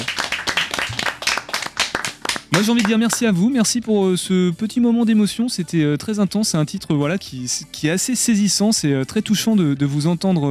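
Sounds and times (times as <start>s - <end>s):
audience clapping: 0.0s - 3.3s
speech: 2.6s - 10.4s.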